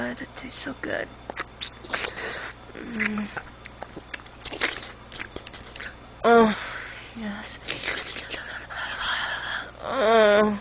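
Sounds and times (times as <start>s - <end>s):
speech: 0.1s - 2.0s, 2.8s - 4.8s, 6.2s - 8.5s, 9.8s - 10.5s
wet licking and smacking: 1.3s - 5.9s.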